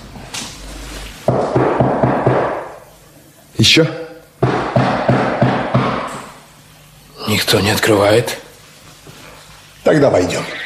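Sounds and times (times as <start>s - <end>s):
knocking on a door: 1.3s - 2.7s, 4.4s - 6.2s
speech: 3.6s - 4.0s, 7.4s - 8.4s, 9.8s - 10.6s.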